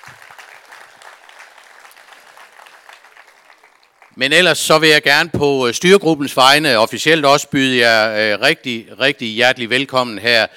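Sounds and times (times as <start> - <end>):
audience applause for team captains: 0.0 - 4.2
speech: 4.2 - 10.5.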